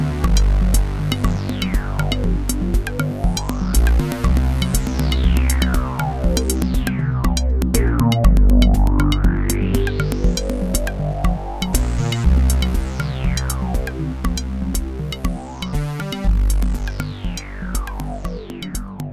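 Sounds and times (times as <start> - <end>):
synthesizer dual mix: 0.0 - 19.1.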